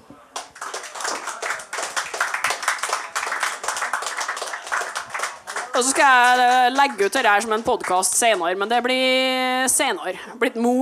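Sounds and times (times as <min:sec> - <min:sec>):
applause: 0:00.3 - 0:08.5
speech: 0:05.8 - 0:10.7.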